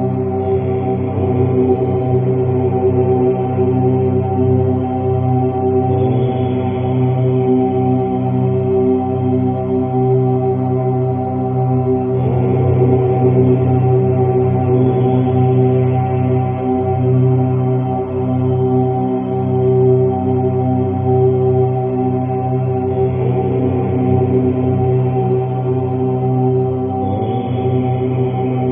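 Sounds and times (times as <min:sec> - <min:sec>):
om chant: 0:00.0 - 0:28.7.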